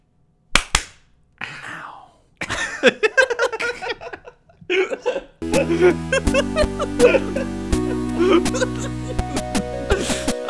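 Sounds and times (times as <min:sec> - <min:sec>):
loud hand claps: 0:00.6 - 0:01.0
laughter: 0:02.5 - 0:10.4
speech: 0:05.6 - 0:07.6, 0:08.2 - 0:09.0.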